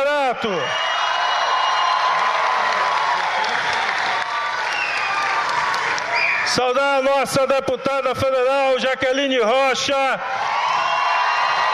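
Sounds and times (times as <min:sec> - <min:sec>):
speech: 0:00.3 - 0:01.0, 0:06.5 - 0:10.4
audience applause: 0:00.8 - 0:06.5, 0:10.4 - 0:11.7.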